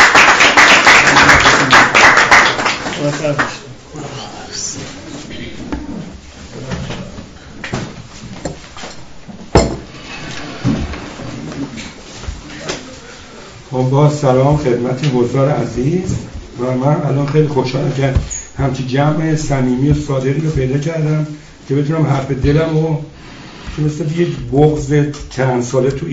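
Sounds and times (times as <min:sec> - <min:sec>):
audience applause: 0:00.0 - 0:03.7
speech: 0:03.2 - 0:03.6, 0:13.9 - 0:23.1, 0:23.8 - 0:26.1.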